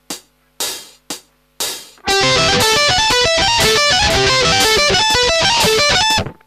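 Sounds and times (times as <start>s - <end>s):
advanced arpeggio: 2.1s - 6.4s.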